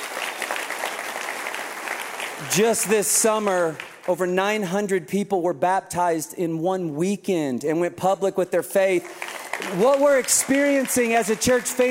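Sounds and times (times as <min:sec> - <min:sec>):
audience clapping: 0:00.0 - 0:04.7, 0:08.9 - 0:11.9
speech: 0:02.4 - 0:11.9.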